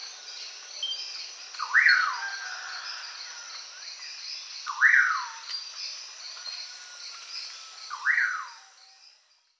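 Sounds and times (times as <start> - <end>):
common pauraque calling: 1.6 - 2.4, 4.6 - 5.4, 7.9 - 8.6.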